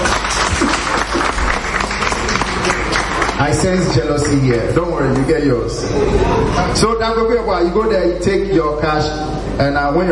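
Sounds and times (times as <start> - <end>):
crowd applause: 0.0 - 4.5
murmur of voices: 1.8 - 10.0
speech: 3.4 - 10.0.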